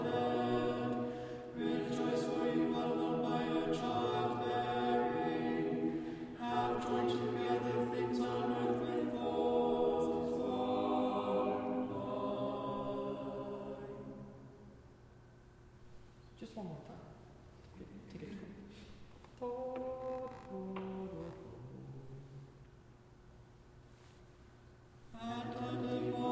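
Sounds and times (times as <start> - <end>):
tenor chanting a tone four sticheron: 0.0 - 14.5, 19.4 - 22.5, 25.2 - 26.3.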